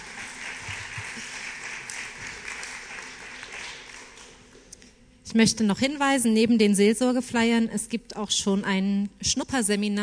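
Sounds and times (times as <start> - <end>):
audience clapping: 0.0 - 4.7
speech: 5.3 - 10.0.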